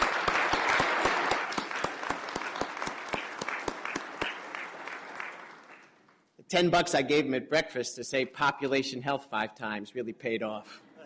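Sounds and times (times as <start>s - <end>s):
audience applause: 0.0s - 6.2s
speech: 6.5s - 10.8s.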